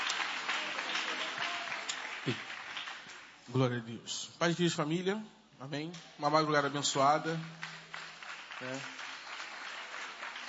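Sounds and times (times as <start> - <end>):
audience applause: 0.0 - 3.4, 6.7 - 10.4
speech: 2.2 - 2.5, 3.5 - 7.7, 8.6 - 9.0.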